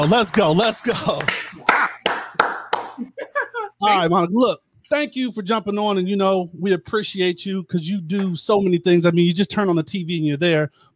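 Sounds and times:
speech: 0:00.0 - 0:01.7, 0:03.9 - 0:10.9
clapping: 0:00.0 - 0:03.0
laughter: 0:02.8 - 0:03.9.

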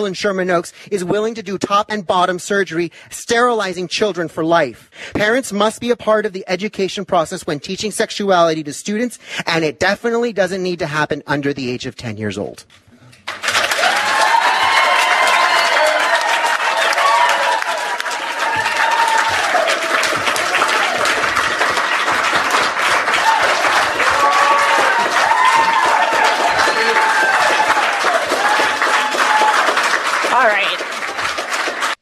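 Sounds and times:
speech: 0:00.0 - 0:13.4
crowd applause and cheering: 0:13.1 - 0:32.0.

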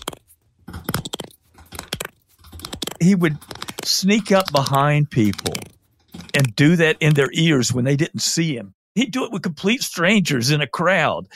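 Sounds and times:
finger and thumb rubbed together mimicking a cricket: 0:00.0 - 0:07.3
speech: 0:03.0 - 0:05.7, 0:06.4 - 0:11.3.

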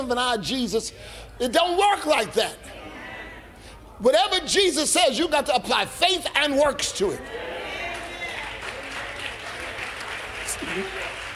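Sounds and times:
speech: 0:00.0 - 0:02.8, 0:04.0 - 0:07.5
audience clapping: 0:07.8 - 0:11.3.

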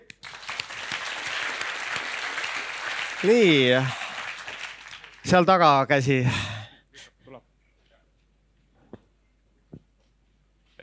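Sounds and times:
audience applauding: 0:00.0 - 0:06.6
speech: 0:03.2 - 0:04.0, 0:05.2 - 0:06.5.

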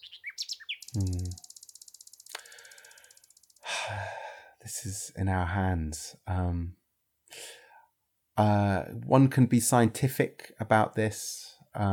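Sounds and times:
nightingale singing: 0:00.0 - 0:03.6
speech: 0:01.0 - 0:01.4, 0:04.8 - 0:06.8, 0:08.4 - 0:11.9.

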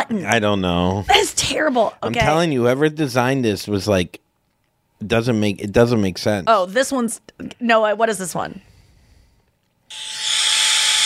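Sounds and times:
speech: 0:00.1 - 0:04.2, 0:05.0 - 0:08.7
hair dryer running: 0:09.9 - 0:11.0.

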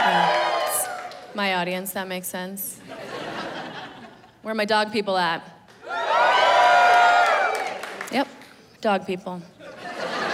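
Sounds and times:
audience cheering and whooping: 0:00.0 - 0:01.3, 0:05.8 - 0:08.0
speech: 0:01.4 - 0:02.9, 0:04.4 - 0:05.6, 0:08.1 - 0:09.6
laughter: 0:02.8 - 0:04.3, 0:09.6 - 0:10.3.

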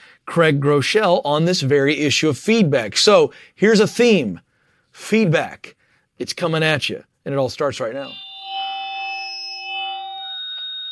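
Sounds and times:
speech: 0:00.3 - 0:08.2
audio feedback squeal: 0:07.6 - 0:10.8.

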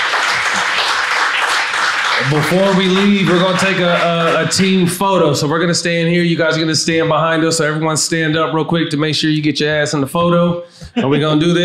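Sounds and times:
live audience round of applause: 0:00.0 - 0:04.9
speech: 0:02.2 - 0:11.6.

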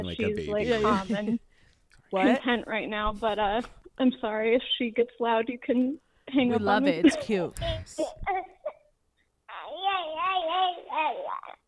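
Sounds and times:
speech: 0:00.0 - 0:01.5, 0:02.1 - 0:08.5
baby babbling: 0:08.0 - 0:08.8, 0:09.5 - 0:11.6.

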